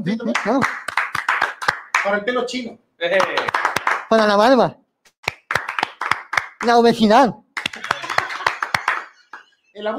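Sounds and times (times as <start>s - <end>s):
speech: 0.0s - 0.8s, 2.0s - 4.8s, 6.6s - 7.4s, 9.8s - 9.9s
scattered audience applause: 0.4s - 2.1s, 3.2s - 4.1s, 5.3s - 6.7s, 7.6s - 9.6s
laughter: 7.7s - 9.8s.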